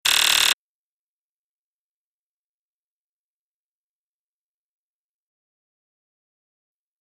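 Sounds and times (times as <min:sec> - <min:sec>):
ray gun alarm beep: 0:00.0 - 0:00.6.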